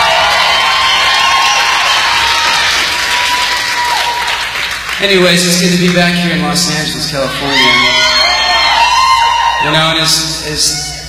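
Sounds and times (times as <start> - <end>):
applause and cheering: 0.0 - 9.8
speech: 5.0 - 7.8, 9.6 - 10.9.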